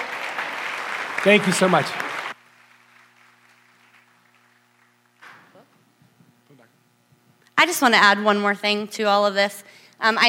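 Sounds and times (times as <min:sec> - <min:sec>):
audience applause: 0:00.0 - 0:05.0
speech: 0:01.2 - 0:02.0, 0:07.6 - 0:10.2.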